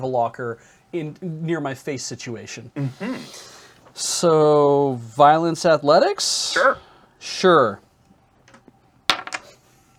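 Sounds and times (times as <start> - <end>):
speech: 0.0 - 7.8
dice rolling: 8.5 - 9.6.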